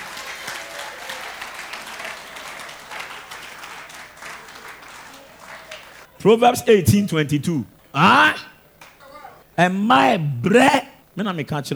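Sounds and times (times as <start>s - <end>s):
audience clapping: 0.0s - 6.2s, 8.8s - 9.0s
speech: 6.2s - 8.5s, 9.6s - 11.7s.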